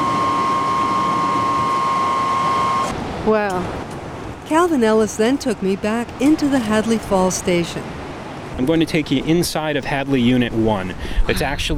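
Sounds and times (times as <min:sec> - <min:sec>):
high-pitched whine of floodgates opening: 0:00.0 - 0:03.0
speech: 0:03.2 - 0:03.8, 0:04.5 - 0:08.0, 0:08.6 - 0:11.7.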